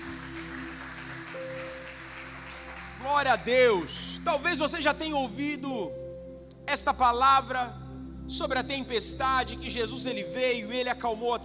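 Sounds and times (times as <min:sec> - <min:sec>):
congregation applause during a church service: 0:00.0 - 0:03.5
speech: 0:03.0 - 0:06.0, 0:06.7 - 0:11.4.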